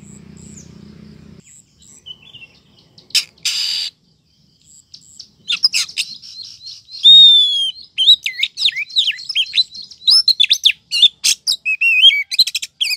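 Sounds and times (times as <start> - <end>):
Oriental magpie-robin rising whistle: 3.1 - 3.9, 5.5 - 12.9.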